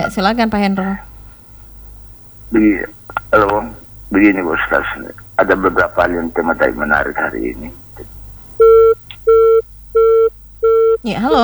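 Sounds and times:
speech: 0.1s - 1.1s, 2.5s - 8.1s, 11.0s - 11.4s
telephone busy tone beeps after a call cut off: 8.6s - 11.1s.

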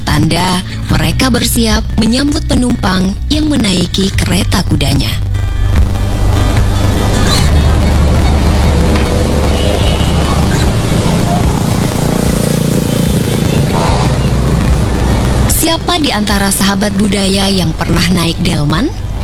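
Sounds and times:
dense street traffic with engines droning: 0.0s - 19.2s
speech: 0.2s - 5.3s, 15.6s - 19.0s
higher engine whines: 5.4s - 17.7s
murmured voices: 6.6s - 12.4s.

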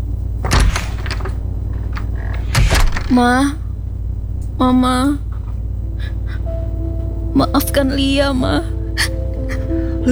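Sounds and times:
unlocked door being opened with thumps and rattles: 0.0s - 7.9s
low rumble: 0.0s - 10.1s
speech: 3.1s - 3.6s, 4.6s - 5.3s, 7.4s - 9.2s.

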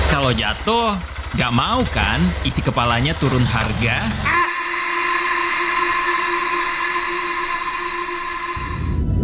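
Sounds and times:
speech: 0.1s - 4.4s
blue whale call: 4.2s - 9.1s.

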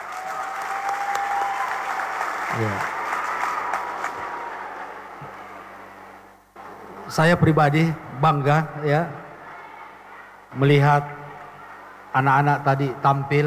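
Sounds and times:
audience applause: 0.0s - 7.0s, 9.4s - 12.5s
speech: 2.5s - 3.0s, 7.1s - 9.2s, 10.6s - 11.2s, 12.2s - 13.4s.

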